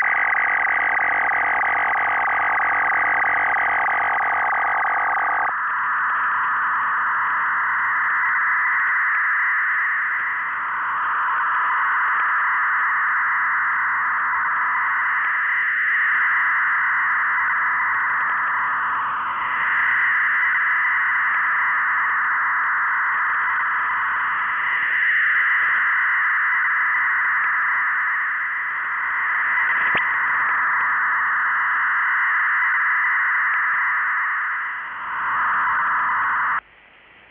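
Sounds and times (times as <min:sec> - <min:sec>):
4FSK 200 baud and BPSK 1000 baud data signals: 0:00.0 - 0:36.6.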